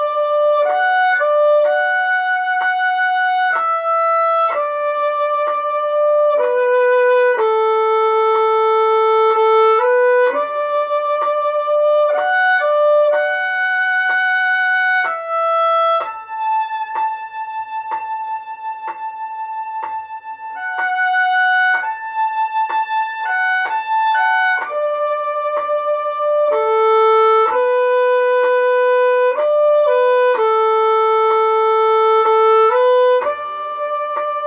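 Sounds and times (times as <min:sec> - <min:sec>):
violin playing a hymn: 0:00.0 - 0:34.4.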